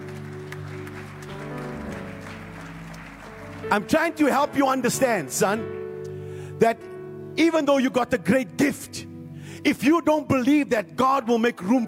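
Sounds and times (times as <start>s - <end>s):
audience clapping: 0.0s - 4.8s
speech: 3.7s - 5.8s, 6.6s - 11.8s.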